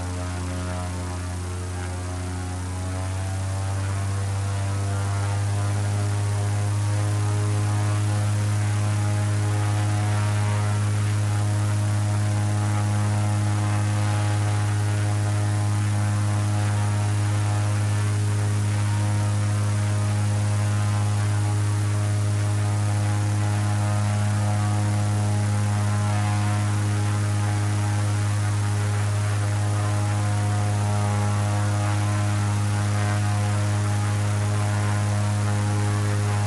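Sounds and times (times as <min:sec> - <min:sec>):
Extra 300 onboard engine starting, idling and revving: 0:00.0 - 0:36.4.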